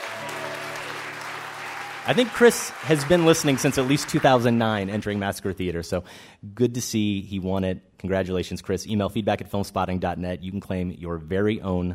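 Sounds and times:
applause: 0.0s - 5.7s
speech: 2.0s - 11.9s.

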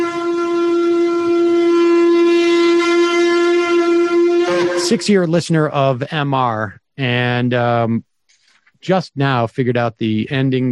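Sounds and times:
shofar horn blast: 0.0s - 5.4s
speech: 4.9s - 8.1s, 8.8s - 10.7s.

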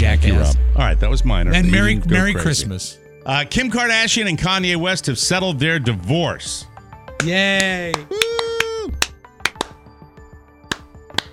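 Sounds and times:
speech: 0.8s - 8.4s
slow unenthusiastic insincere hand claps: 7.1s - 9.9s, 10.6s - 11.3s.

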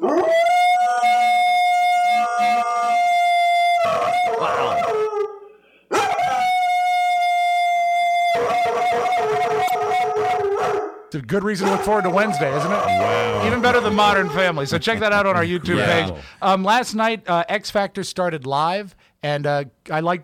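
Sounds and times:
husky mix dog howling: 0.0s - 11.0s, 11.6s - 14.8s
speech: 11.1s - 20.2s
laughter: 12.6s - 16.4s.

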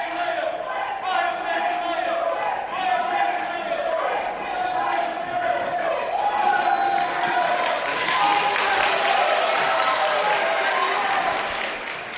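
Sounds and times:
protesters shouting: 0.0s - 11.6s
large crowd clapping and cheering: 6.1s - 12.1s.

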